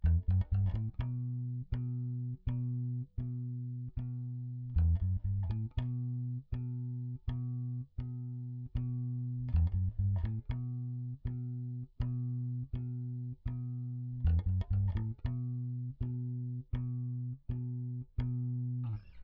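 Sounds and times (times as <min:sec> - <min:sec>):
bass: 0:00.0 - 0:19.2.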